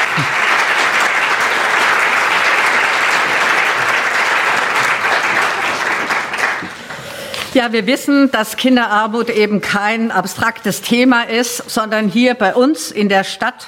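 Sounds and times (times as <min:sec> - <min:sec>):
audience applause: 0:00.0 - 0:07.0
speech: 0:07.6 - 0:13.6.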